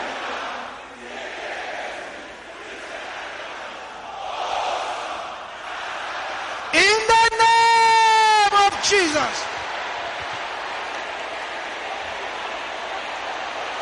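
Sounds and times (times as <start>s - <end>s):
men in audience shouting prayer loudly: 6.4s - 9.5s
speech: 8.9s - 9.5s.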